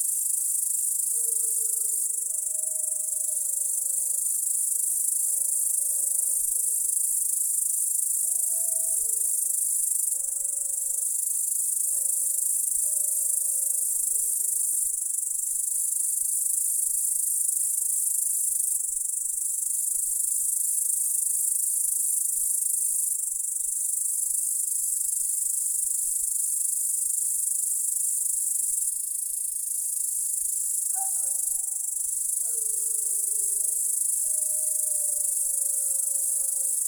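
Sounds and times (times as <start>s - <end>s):
crickets chirping at night: 0.0s - 36.8s
dog barking at night: 31.0s - 31.7s.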